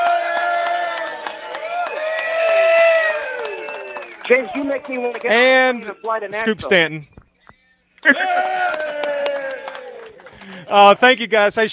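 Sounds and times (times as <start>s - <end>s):
audience applause: 0.0s - 6.2s, 8.1s - 11.0s
speech: 4.3s - 7.1s, 8.0s - 8.7s, 10.7s - 11.7s.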